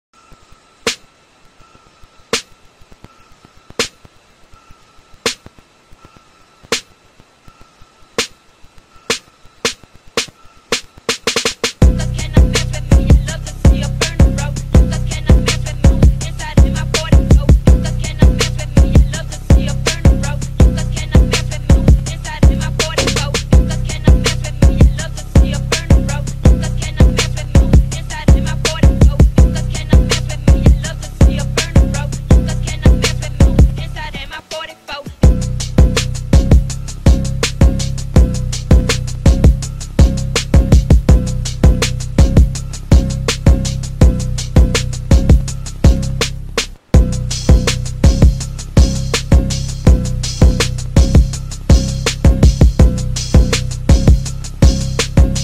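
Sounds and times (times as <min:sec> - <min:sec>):
instrumental music: 0:00.3 - 0:55.4.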